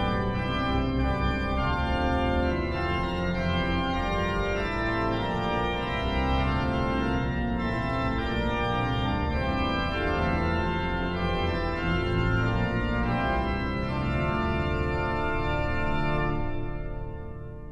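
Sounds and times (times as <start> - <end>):
early music hymn played on organ: 0.0 - 17.6.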